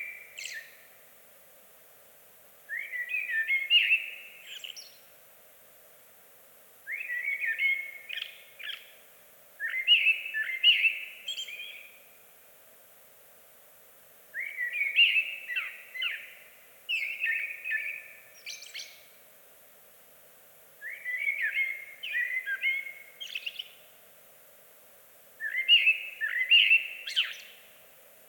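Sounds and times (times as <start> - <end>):
Eurasian blackbird mellow whistled song phrases: 0.0 - 0.9, 2.7 - 5.1, 6.9 - 9.0, 9.6 - 12.0, 14.4 - 19.2, 20.8 - 23.9, 25.4 - 27.8.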